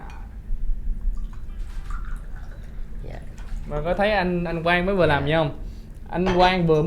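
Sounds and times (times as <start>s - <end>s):
hot tea poured into cups: 1.0s - 5.3s
speech: 3.7s - 6.8s.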